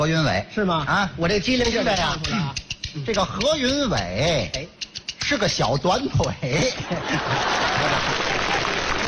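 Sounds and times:
speech: 0.0s - 9.0s
laughter: 6.4s - 9.0s
audience applause at a Chinese crosstalk comedy show: 7.2s - 9.0s.

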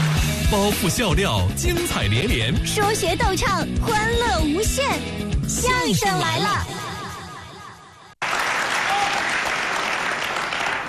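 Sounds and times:
audience applauding to welcome performers: 0.0s - 0.8s, 8.2s - 10.8s
speech: 0.5s - 6.8s.

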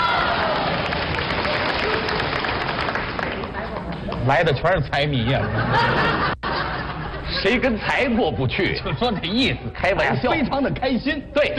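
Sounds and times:
audience cheering: 0.0s - 3.2s
audience applause: 0.0s - 4.3s
speech: 4.3s - 6.3s, 7.4s - 11.5s
laughter: 4.7s - 11.2s.

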